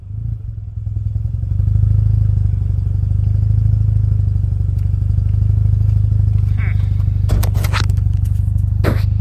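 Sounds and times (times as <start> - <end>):
second-generation RX-7 car exhaust: 0.0 - 9.1.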